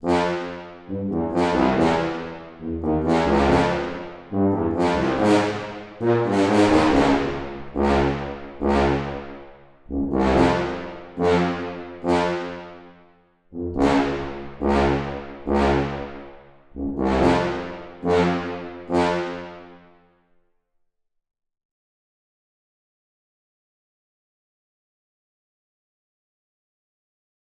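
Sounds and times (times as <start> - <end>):
tuba: 0.0 - 20.0.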